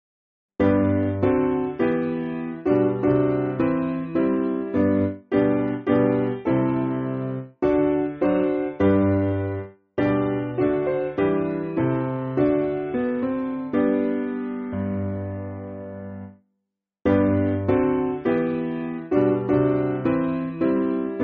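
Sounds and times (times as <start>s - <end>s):
piano backing music for churches: 0.6s - 16.4s, 17.1s - 21.2s.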